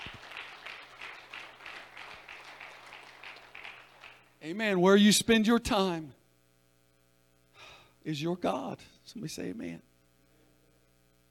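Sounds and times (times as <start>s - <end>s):
audience clapping hands: 0.0s - 4.4s
speech: 4.4s - 6.2s, 8.0s - 9.9s.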